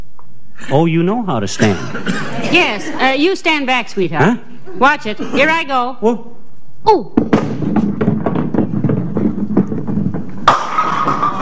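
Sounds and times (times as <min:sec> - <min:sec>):
speech: 0:00.6 - 0:07.7
laughter: 0:01.6 - 0:03.2
bowling ball rolling down the lane: 0:07.2 - 0:11.3.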